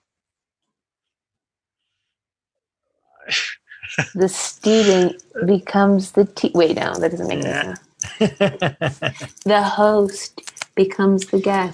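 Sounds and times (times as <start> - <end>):
yawn: 3.3 - 4.0
laughter: 3.3 - 5.1, 8.0 - 9.5
speech: 3.3 - 11.7.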